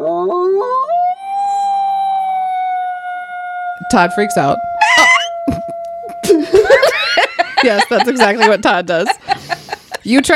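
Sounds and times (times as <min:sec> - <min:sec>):
howl: 0:00.0 - 0:07.2
speech: 0:03.9 - 0:04.7, 0:07.6 - 0:09.3, 0:10.0 - 0:10.3
laughter: 0:06.2 - 0:10.3.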